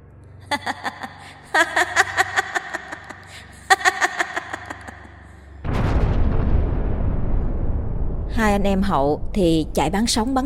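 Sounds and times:
speech: 0.5s - 1.9s, 8.4s - 10.4s
woman's shrill rhythmic cackling laughter: 0.5s - 5.4s
roaring rumble: 4.6s - 10.4s
lightning strike shattering the stone covering a well: 5.6s - 8.3s.

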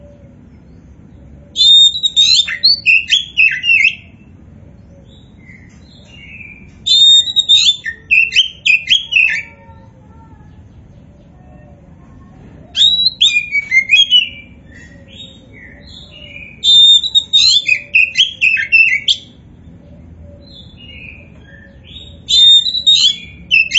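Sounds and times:
Oriental magpie-robin song: 1.5s - 4.2s, 5.1s - 9.5s, 12.7s - 19.4s, 20.4s - 23.7s.

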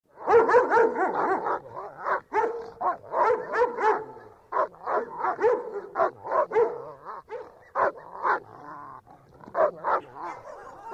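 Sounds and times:
dogs barking hoarsely: 0.1s - 8.6s, 9.4s - 10.9s.

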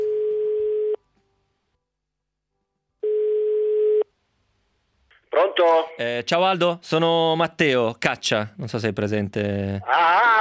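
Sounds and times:
outgoing-call ringing tone on a telephone line: 0.0s - 1.0s, 3.0s - 4.1s
speech: 5.6s - 10.3s.

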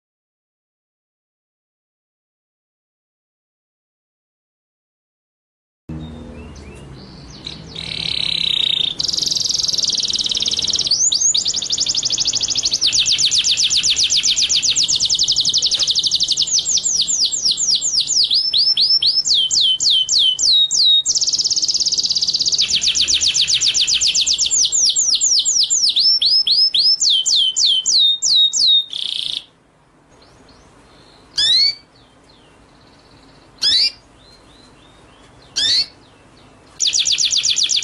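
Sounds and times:
white-rumped shama song: 6.0s - 29.5s, 30.2s - 37.8s.

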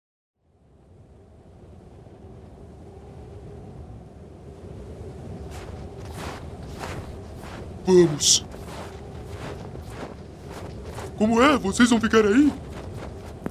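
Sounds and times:
icy wind blowing over empty snow at the North Pole: 0.5s - 13.4s
sharp gusts or crunches: 5.3s - 13.4s
speech: 7.9s - 8.5s, 11.2s - 12.7s.

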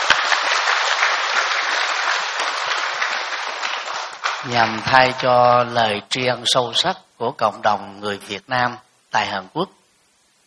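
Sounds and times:
audience applause at a Vietnamese Buddhist community ceremony in South Korea: 0.0s - 5.6s
speech: 4.4s - 9.8s.

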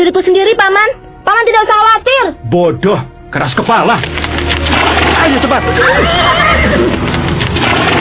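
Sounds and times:
speech: 0.2s - 7.9s
horse neighing: 5.7s - 7.2s.

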